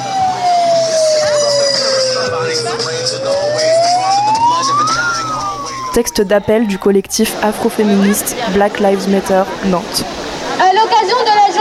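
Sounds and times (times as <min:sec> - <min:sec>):
megaphone alarm: 0:00.0 - 0:09.0
speech: 0:06.0 - 0:11.5.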